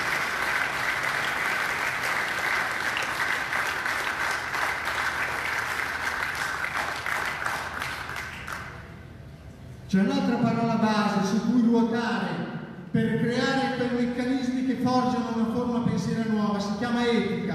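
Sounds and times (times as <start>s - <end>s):
audience applause: 0.0s - 8.9s
speech: 9.9s - 12.4s, 13.0s - 17.5s.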